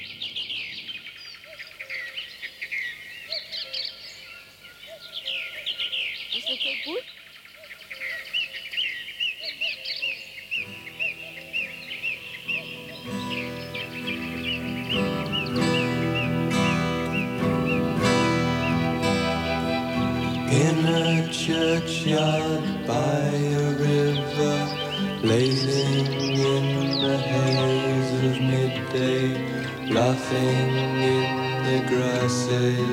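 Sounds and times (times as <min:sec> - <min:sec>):
nightingale singing in a film soundtrack: 0:00.0 - 0:32.9
steady musical backing from a film soundtrack: 0:10.7 - 0:32.9.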